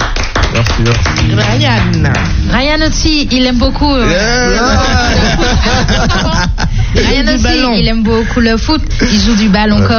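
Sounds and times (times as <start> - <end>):
audience applauding: 0.0 - 2.4
speech: 0.8 - 9.9
laughter: 4.0 - 9.8.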